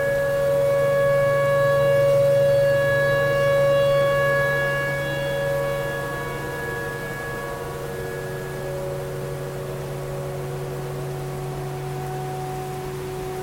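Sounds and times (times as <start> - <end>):
tornado siren: 0.0 - 13.4.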